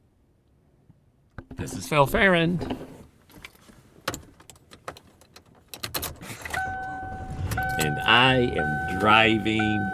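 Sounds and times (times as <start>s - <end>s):
speech: 1.5s - 2.9s, 8.1s - 9.9s
key fumbling in a car door lock: 4.1s - 6.2s.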